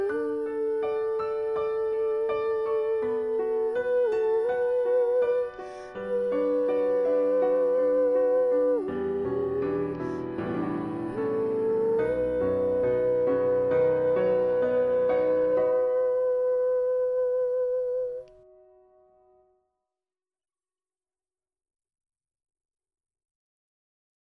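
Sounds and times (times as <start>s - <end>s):
soprano singing: 0.0s - 18.5s.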